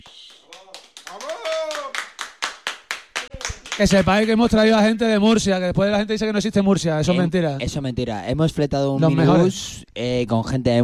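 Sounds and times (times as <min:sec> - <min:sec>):
audience applause: 0:00.0 - 0:04.3
speech: 0:03.8 - 0:10.8.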